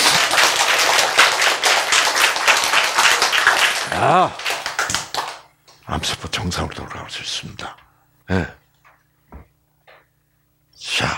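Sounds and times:
crowd applauding: 0.0s - 5.5s
speech: 6.0s - 8.6s.

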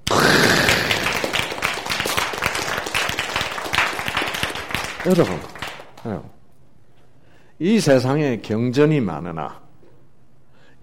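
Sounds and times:
audience applause: 0.0s - 6.2s
speech: 5.0s - 6.4s, 7.6s - 9.6s.

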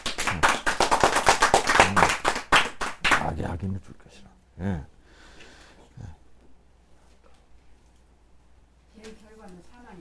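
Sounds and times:
clapping: 0.0s - 3.3s
speech: 3.6s - 4.9s.

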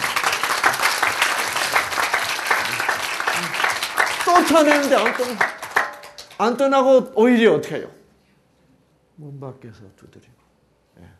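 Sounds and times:
audience applause: 0.0s - 6.6s
speech: 4.4s - 5.6s, 6.4s - 8.0s, 9.2s - 10.4s.

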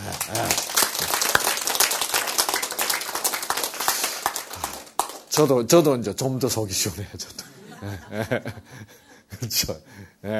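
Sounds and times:
crowd applauding: 0.0s - 5.6s
speech: 0.3s - 0.7s, 5.4s - 10.3s
laughter: 7.3s - 9.0s.

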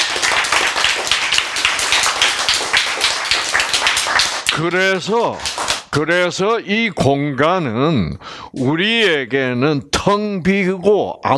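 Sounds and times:
audience clapping: 0.0s - 6.0s
speech: 4.6s - 11.3s.

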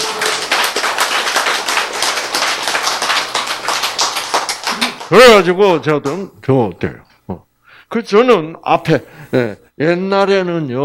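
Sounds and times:
audience applause: 0.0s - 5.3s
speech: 5.1s - 10.8s.

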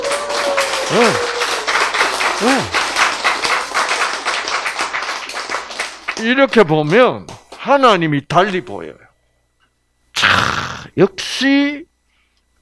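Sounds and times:
vocal whoops: 0.0s - 3.0s
audience applause: 0.0s - 6.4s
speech: 0.9s - 1.3s, 2.4s - 2.8s, 6.2s - 9.1s, 10.2s - 11.9s.

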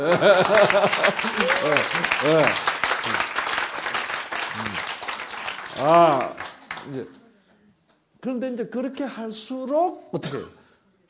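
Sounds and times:
speech: 0.0s - 3.3s, 5.8s - 7.2s, 8.2s - 11.0s
audience applause: 0.0s - 7.2s
people calling out and laughing: 1.2s - 2.0s.

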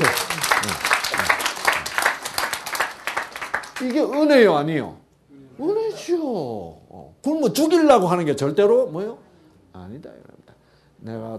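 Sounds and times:
audience applause: 0.0s - 4.0s
speech: 3.8s - 5.0s, 5.6s - 9.2s, 9.8s - 10.4s, 11.0s - 11.3s.

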